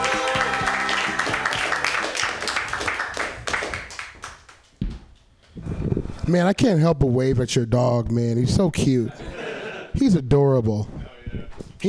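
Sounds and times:
audience clapping for a comedian at an open mic: 0:00.0 - 0:04.7
speech: 0:06.3 - 0:09.3, 0:10.0 - 0:11.0
laughter: 0:09.0 - 0:10.0.

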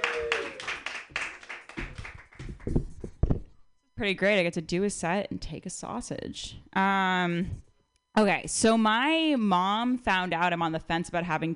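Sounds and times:
small audience clapping at a stand-up comedy night: 0:00.0 - 0:02.8
speech: 0:04.0 - 0:11.5.

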